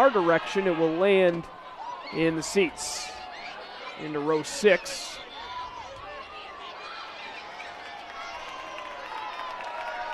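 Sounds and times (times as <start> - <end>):
speech: 0.0 - 3.2, 4.0 - 5.2
ballpark crowd applauding: 7.6 - 10.1.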